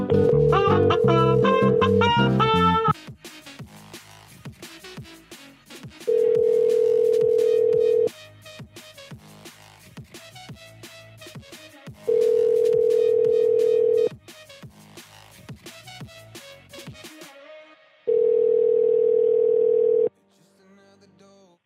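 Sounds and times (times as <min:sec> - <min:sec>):
telephone ring tones calling a home number: 0:00.1 - 0:02.2, 0:06.1 - 0:08.1, 0:12.1 - 0:14.1, 0:18.1 - 0:20.1.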